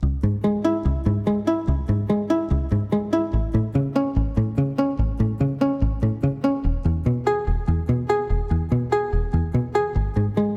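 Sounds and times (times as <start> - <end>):
plucked note: 0.0 - 10.5.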